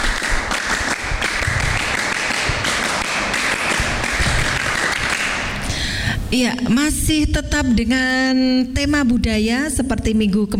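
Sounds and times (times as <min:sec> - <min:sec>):
scout-style rhythmic group hand clapping: 0:00.0 - 0:05.8
speech: 0:06.3 - 0:10.5.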